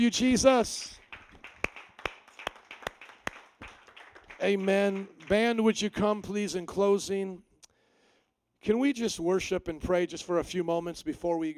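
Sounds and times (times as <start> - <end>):
speech: 0.0 - 1.0, 4.4 - 7.5, 8.6 - 11.5
audience hand clapping: 0.8 - 6.8.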